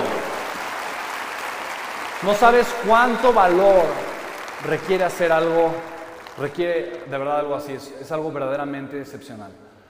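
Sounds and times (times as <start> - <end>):
audience applause: 0.0 - 7.0
speech: 2.2 - 9.6.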